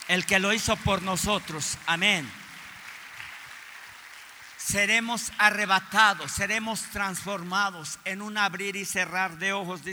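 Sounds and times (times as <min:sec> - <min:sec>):
audience applause: 0:00.0 - 0:06.8
speech: 0:00.1 - 0:02.4, 0:04.7 - 0:09.9.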